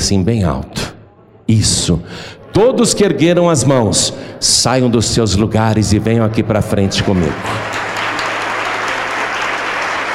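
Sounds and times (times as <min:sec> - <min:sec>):
speech: 0:00.1 - 0:00.8, 0:01.5 - 0:08.1
audience applauding: 0:07.0 - 0:10.1.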